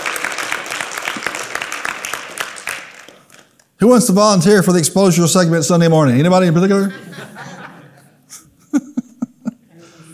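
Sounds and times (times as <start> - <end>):
audience hand clapping: 0.0 - 3.8
speech: 3.8 - 7.1
laughter: 6.7 - 10.1.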